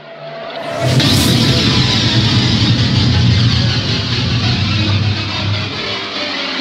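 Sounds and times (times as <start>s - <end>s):
loud warning signal: 0.6s - 6.5s.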